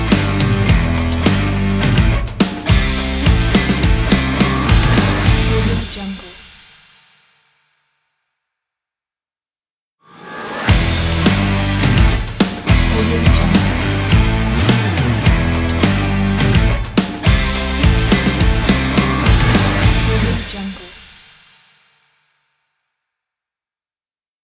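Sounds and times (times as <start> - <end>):
sport rock music intro: 0.0 - 6.0, 10.5 - 20.7.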